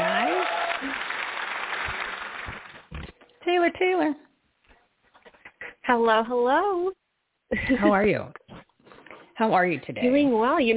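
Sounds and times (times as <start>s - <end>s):
audience clapping for a guest on a show: 0.0s - 3.0s
speech: 3.7s - 4.2s, 5.9s - 7.0s, 7.6s - 8.4s, 9.4s - 10.7s.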